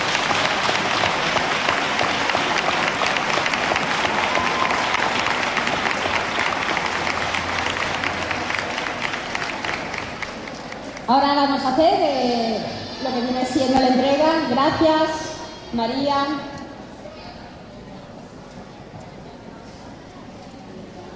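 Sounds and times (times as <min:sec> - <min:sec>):
large crowd applauding: 0:00.0 - 0:11.1
speech: 0:11.1 - 0:12.4, 0:13.6 - 0:16.4.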